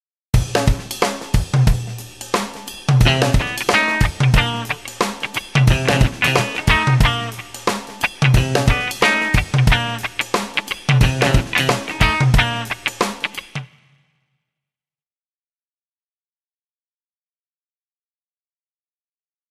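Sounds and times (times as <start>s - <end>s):
rhythm guitar: 0.4s - 13.7s.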